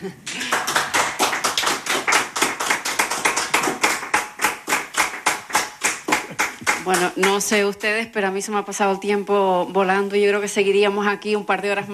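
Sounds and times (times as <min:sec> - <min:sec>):
speech: 0:00.0 - 0:00.3, 0:06.8 - 0:11.9
audience applause: 0:00.2 - 0:07.1.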